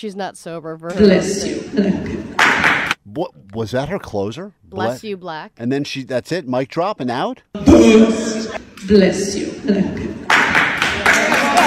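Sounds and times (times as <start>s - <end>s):
speech: 0.0s - 10.3s
wedding guests clapping after speech: 2.4s - 3.0s, 10.2s - 11.6s.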